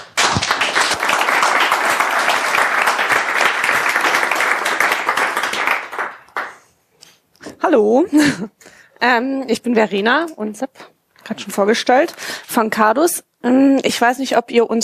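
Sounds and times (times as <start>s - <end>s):
audience applause: 0.0s - 6.6s
speech: 7.7s - 14.8s.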